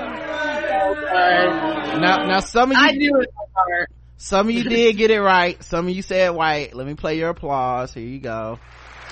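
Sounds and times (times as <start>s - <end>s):
crowd booing: 0.0s - 2.9s
speech: 2.0s - 9.1s.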